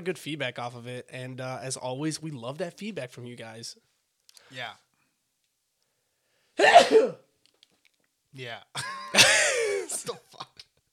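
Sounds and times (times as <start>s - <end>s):
speech: 0.0s - 3.9s, 4.5s - 4.8s, 6.6s - 7.3s, 8.4s - 10.6s
person sneezing: 6.6s - 7.3s.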